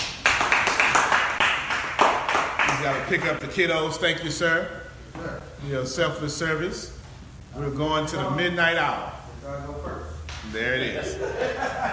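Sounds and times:
audience clapping: 0.0s - 3.4s
speech: 2.8s - 7.0s, 7.6s - 11.9s
laughter: 11.0s - 11.9s.

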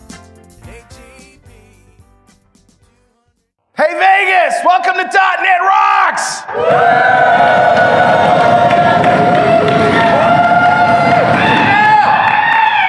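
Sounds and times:
speech: 3.9s - 8.0s
crowd cheering: 3.9s - 12.8s
crowd hubbub in a packed hall at a tech conference in Las Vegas: 6.5s - 11.7s.

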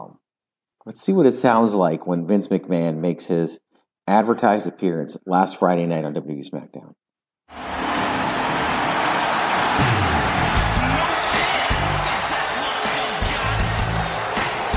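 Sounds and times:
speech: 0.8s - 7.6s
arena crowd booing: 7.5s - 14.7s.

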